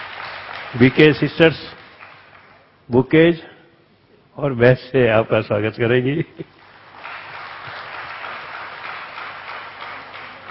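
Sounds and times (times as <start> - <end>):
loud sustained audience applause: 0.0 - 2.7, 6.6 - 10.4
speech: 0.7 - 1.8, 2.9 - 3.5, 4.4 - 6.6.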